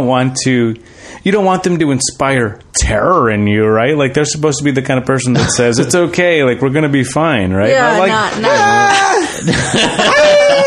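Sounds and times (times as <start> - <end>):
speech: 0.0 - 10.6
strange loud human scream: 8.3 - 9.4, 10.0 - 10.6.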